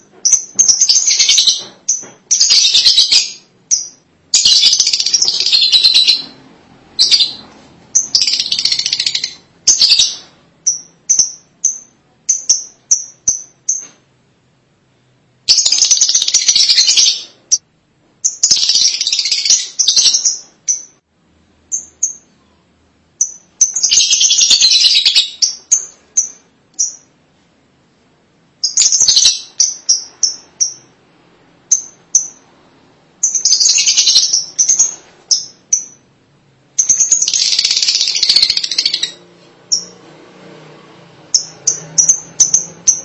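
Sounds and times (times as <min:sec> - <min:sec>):
lovebird chirps and chatter: 0:00.2 - 0:06.4, 0:07.0 - 0:13.9, 0:15.5 - 0:17.6, 0:18.2 - 0:21.0, 0:23.2 - 0:27.1, 0:28.6 - 0:30.9, 0:33.2 - 0:36.0, 0:36.8 - 0:40.0, 0:41.3 - 0:43.0.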